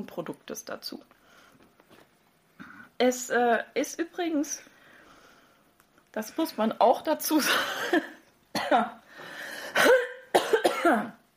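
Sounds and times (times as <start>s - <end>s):
speech: 0.0s - 1.2s, 3.0s - 4.7s, 6.1s - 9.0s, 10.8s - 11.2s
person coughing and clearing phlegm: 7.4s - 9.0s, 9.7s - 11.2s.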